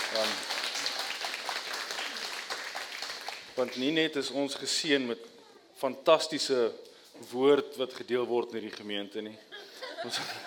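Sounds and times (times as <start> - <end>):
audience applause: 0.0 - 3.9
speech: 3.6 - 10.4
laughter: 9.5 - 10.4.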